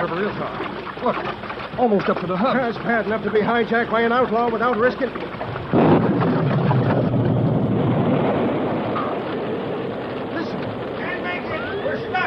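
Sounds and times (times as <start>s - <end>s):
speech: 0.1s - 5.9s
thunder: 5.7s - 11.7s
heavy rain cloudburst: 5.7s - 12.2s.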